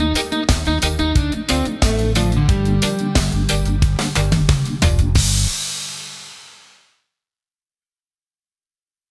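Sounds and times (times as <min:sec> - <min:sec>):
reggae music: 0:00.0 - 0:06.7.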